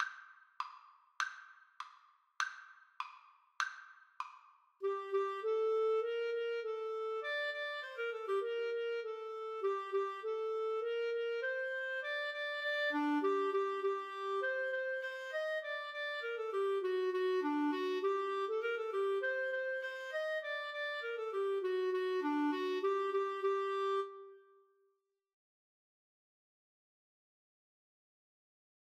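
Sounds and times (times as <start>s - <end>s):
clarinet duet: 4.8s - 24.6s.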